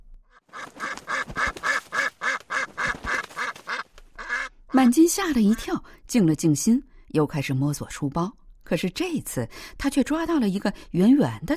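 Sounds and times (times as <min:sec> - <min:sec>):
white duck flapping wings: 0:00.4 - 0:04.5
speech: 0:04.7 - 0:11.5.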